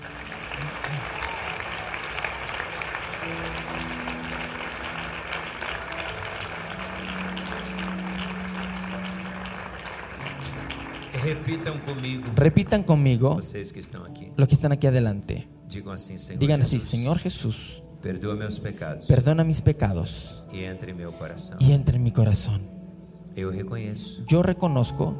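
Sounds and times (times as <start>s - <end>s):
audience applause: 0.0s - 13.2s
speech: 11.3s - 22.8s, 23.4s - 25.1s.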